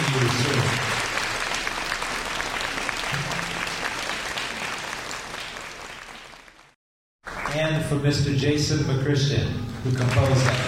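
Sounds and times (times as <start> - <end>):
audience applause: 0.0 - 7.6, 9.9 - 10.6
speech: 7.9 - 10.6.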